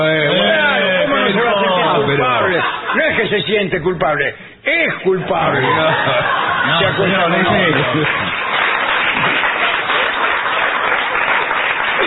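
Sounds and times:
laughter: 0:00.3 - 0:03.6, 0:05.3 - 0:09.8
speech: 0:02.6 - 0:08.3
audience applause: 0:05.9 - 0:12.0.

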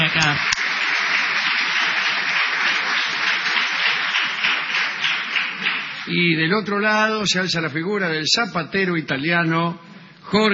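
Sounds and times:
audience ovation: 0:00.0 - 0:06.1
speech: 0:00.2 - 0:00.6, 0:06.1 - 0:10.5.

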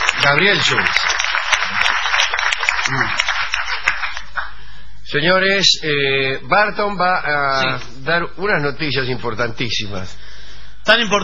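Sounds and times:
audience applause: 0:00.0 - 0:04.6
speech: 0:00.2 - 0:01.2, 0:02.9 - 0:03.2, 0:05.1 - 0:10.2, 0:10.9 - 0:11.2.

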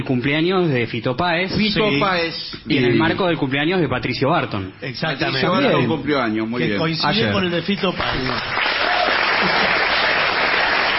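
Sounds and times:
speech: 0:00.0 - 0:08.8
crowd applause: 0:08.0 - 0:10.9.

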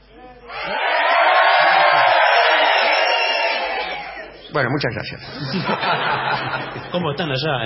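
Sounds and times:
audience shouting together: 0:00.5 - 0:04.4
speech: 0:04.5 - 0:07.6
laughter: 0:05.2 - 0:07.3.

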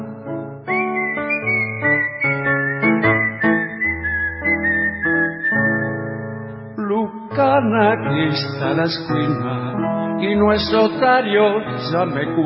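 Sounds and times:
person whistling a tango melody: 0:00.6 - 0:06.9
speech: 0:07.6 - 0:09.6, 0:10.2 - 0:12.4.

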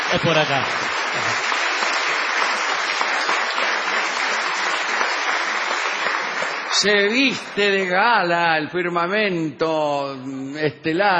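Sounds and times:
audience applause: 0:00.0 - 0:07.7
speech: 0:00.1 - 0:01.6, 0:06.7 - 0:11.1.

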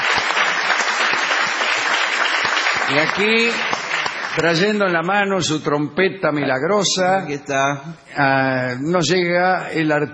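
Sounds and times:
audience applause in a small venue on a city street: 0:00.0 - 0:04.8
speech: 0:02.9 - 0:03.8, 0:04.4 - 0:10.1.

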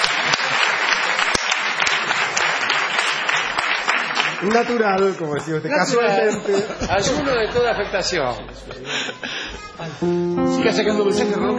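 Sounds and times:
audience applause for a guest: 0:00.0 - 0:05.7
speech: 0:04.4 - 0:11.5
laughter: 0:05.2 - 0:10.2.

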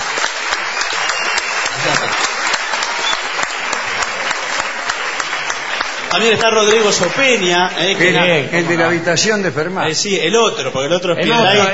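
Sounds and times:
audience applause: 0:00.0 - 0:08.8
speech: 0:06.1 - 0:11.7.

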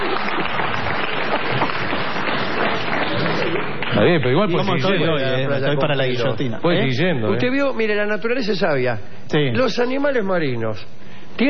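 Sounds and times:
audience applause: 0:00.0 - 0:04.8
speech: 0:04.0 - 0:11.4.

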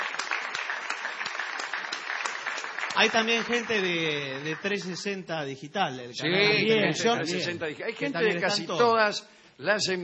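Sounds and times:
crowd applauding at a radio station event: 0:00.0 - 0:05.3
speech: 0:03.0 - 0:10.0.

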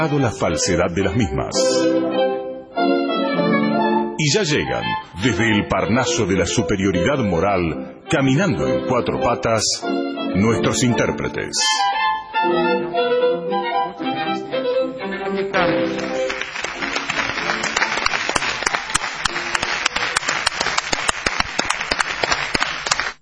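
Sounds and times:
speech: 0:00.0 - 0:03.0, 0:04.2 - 0:13.1
tonal music: 0:00.0 - 0:21.9
audience ovation applause: 0:15.3 - 0:23.1.

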